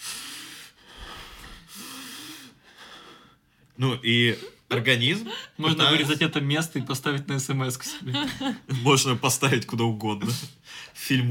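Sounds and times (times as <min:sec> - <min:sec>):
person imitating rapid gasping breaths from cold-water shock: 0:00.0 - 0:03.6, 0:04.3 - 0:05.6
speech: 0:03.8 - 0:11.2
laughter: 0:04.7 - 0:09.6.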